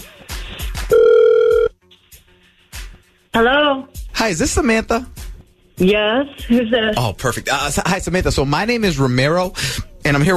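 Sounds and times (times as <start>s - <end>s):
electronic phone ring tone: 0.9s - 1.7s
speech: 3.4s - 5.2s, 5.8s - 10.3s.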